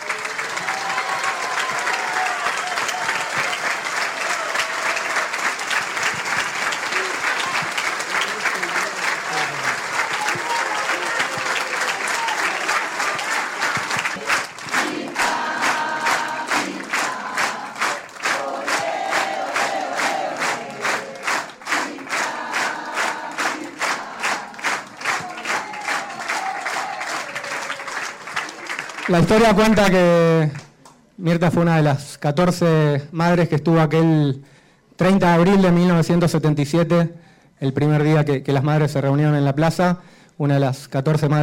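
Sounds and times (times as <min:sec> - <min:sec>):
crowd applauding and cheering: 0:00.0 - 0:30.4
speech: 0:29.1 - 0:30.6, 0:31.2 - 0:41.4.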